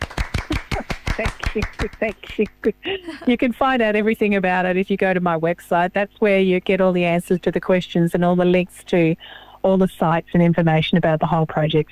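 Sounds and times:
applause: 0.0s - 2.6s
speech: 1.2s - 11.8s.

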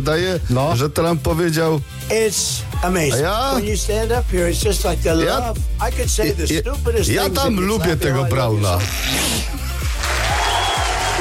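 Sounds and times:
speech: 0.0s - 9.6s
crowd applause: 9.8s - 11.1s.

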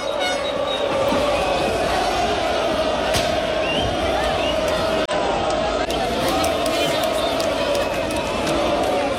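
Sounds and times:
crowd of 60,000 Lens fans welcoming their team back: 0.0s - 9.1s.

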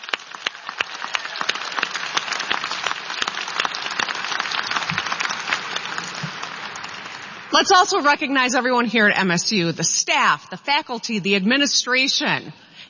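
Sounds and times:
audience applause: 0.0s - 7.5s
speech: 7.6s - 12.6s.

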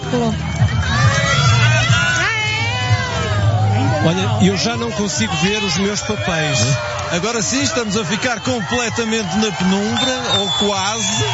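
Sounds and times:
crowd cheering: 0.0s - 11.3s
speech: 0.1s - 0.8s, 4.0s - 11.3s
excited shout: 0.8s - 11.3s.

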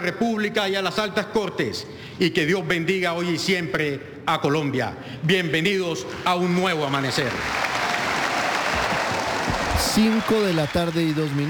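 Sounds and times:
speech: 0.0s - 7.8s, 9.8s - 11.4s
auditorium audience of Universidad Santiago de Cali applauding: 6.8s - 11.4s.

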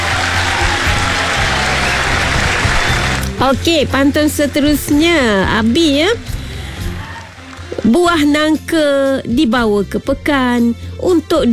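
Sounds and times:
audience clapping: 0.0s - 8.6s
speech: 3.4s - 6.4s, 7.8s - 11.5s.

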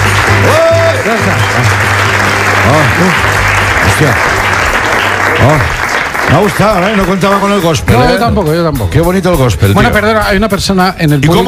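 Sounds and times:
audience applause after a gospel performance: 0.0s - 7.9s
speech: 3.0s - 3.3s, 4.0s - 4.4s, 5.3s - 11.4s.

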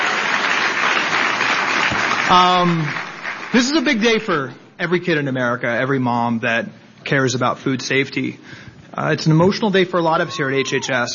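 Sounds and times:
round of applause: 0.0s - 4.0s
speech: 2.3s - 11.1s.

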